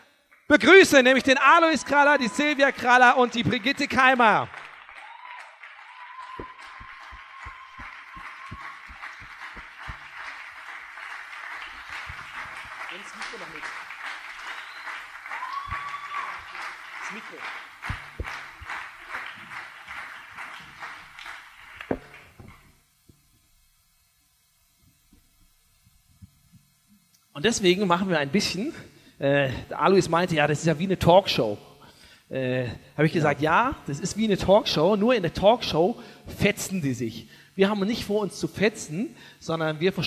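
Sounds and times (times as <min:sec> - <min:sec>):
speech: 0:00.5 - 0:04.6, 0:27.4 - 0:31.7, 0:32.3 - 0:40.0
audience standing ovation applause: 0:01.6 - 0:22.4.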